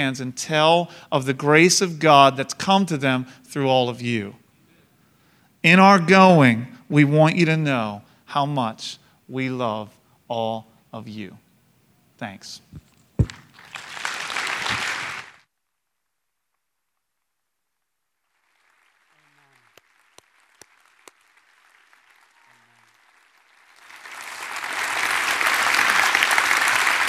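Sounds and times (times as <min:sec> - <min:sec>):
speech: 0:00.0 - 0:04.4, 0:05.6 - 0:11.4, 0:12.2 - 0:12.9
church audience clapping: 0:13.2 - 0:15.4, 0:18.3 - 0:27.0.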